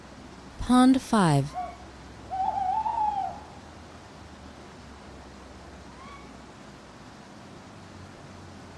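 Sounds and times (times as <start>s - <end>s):
speech: 0.7s - 1.6s
owl hooting: 1.5s - 3.6s, 6.0s - 6.4s.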